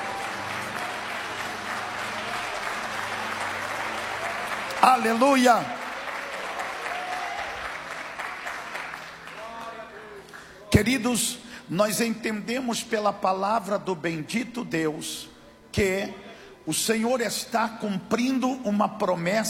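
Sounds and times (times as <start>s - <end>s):
crowd applause: 0.0s - 10.6s
speech: 4.8s - 5.8s, 10.7s - 19.4s.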